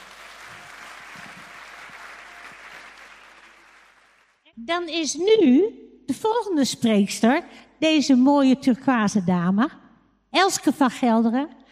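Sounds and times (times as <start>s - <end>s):
audience applause: 0.0s - 4.4s
speech: 4.6s - 9.8s, 10.4s - 11.6s.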